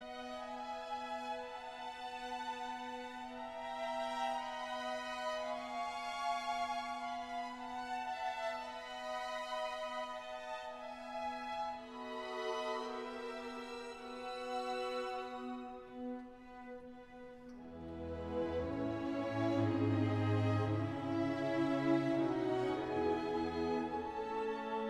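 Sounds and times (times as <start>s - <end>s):
slow concerto for piano and strings: 0.0s - 24.8s.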